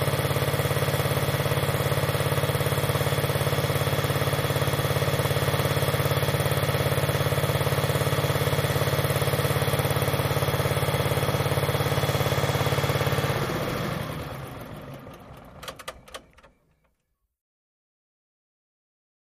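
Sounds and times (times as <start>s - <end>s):
water pump running: 0.0s - 15.4s.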